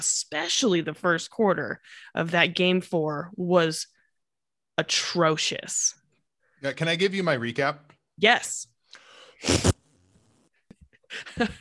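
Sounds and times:
speech: 0.0s - 4.0s, 4.8s - 6.0s, 6.6s - 8.7s, 9.4s - 9.8s, 11.1s - 11.6s
loud rough fart noises: 9.4s - 10.7s.

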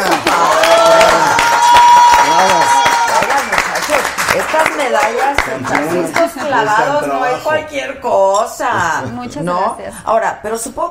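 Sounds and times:
applause: 0.0s - 6.4s
speech: 4.9s - 10.8s.

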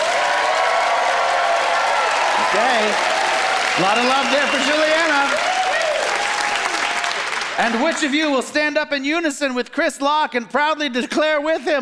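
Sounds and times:
audience applause and cheering: 0.0s - 8.6s
speech: 2.5s - 3.1s, 3.8s - 5.6s, 7.6s - 11.7s.

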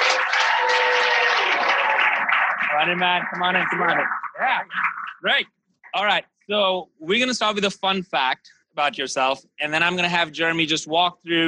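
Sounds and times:
audience round of applause: 0.0s - 5.2s
speech: 2.8s - 11.4s.

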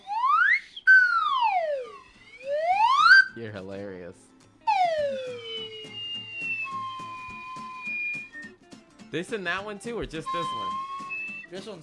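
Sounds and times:
slide whistle: 0.0s - 3.4s, 4.7s - 8.6s, 10.2s - 11.7s
speech: 3.4s - 4.4s, 9.1s - 10.9s, 11.5s - 11.8s.

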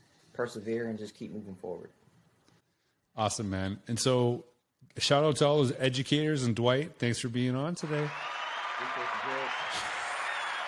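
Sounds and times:
speech: 0.4s - 2.0s, 3.2s - 9.9s
applause sound effect: 7.8s - 10.6s.

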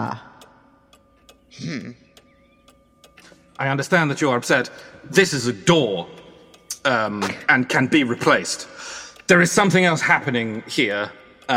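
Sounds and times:
speech: 0.0s - 0.2s, 1.6s - 2.0s, 3.6s - 6.2s, 6.8s - 11.5s
small clock ticking: 0.0s - 11.5s
short louder vocal sound: 1.5s - 2.0s.

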